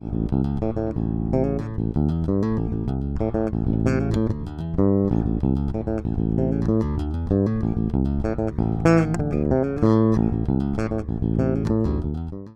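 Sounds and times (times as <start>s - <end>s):
electric bass BA12MKII: 0.0s - 12.5s.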